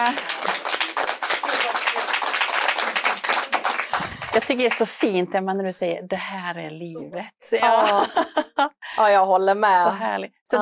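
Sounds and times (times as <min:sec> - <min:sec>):
applause: 0:00.0 - 0:05.1
speech: 0:04.4 - 0:10.6
laughter: 0:07.6 - 0:08.9.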